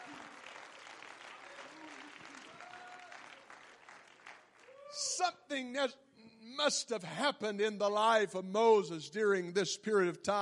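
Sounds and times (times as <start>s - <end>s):
audience clapping hands: 0.0s - 5.2s
speech: 4.9s - 10.4s.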